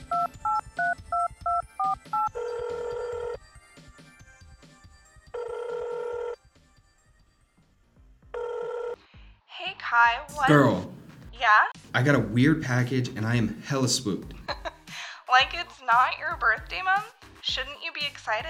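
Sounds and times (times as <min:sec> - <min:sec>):
telephone dialing beeps: 0:00.0 - 0:03.4
telephone ringing: 0:00.0 - 0:03.4, 0:05.3 - 0:06.4, 0:08.4 - 0:09.0
speech: 0:10.0 - 0:10.9, 0:11.5 - 0:14.6, 0:15.9 - 0:18.4.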